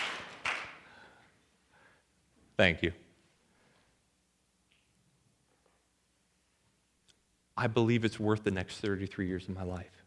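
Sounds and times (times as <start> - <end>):
audience clapping: 0.0 - 1.0
speech: 2.6 - 3.0, 7.6 - 10.0.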